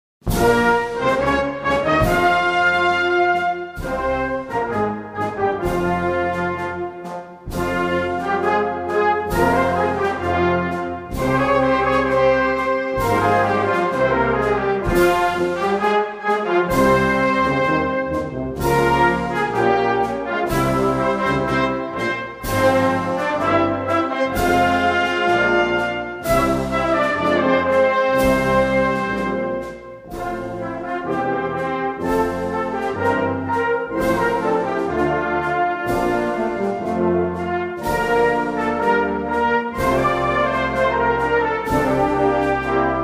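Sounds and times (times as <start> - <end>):
national anthem: 0.3 - 43.0.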